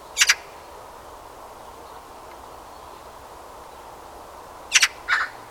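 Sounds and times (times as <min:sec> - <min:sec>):
Eurasian magpie Pica pica giving harsh grating calls: 0:00.2 - 0:00.5, 0:04.7 - 0:05.4.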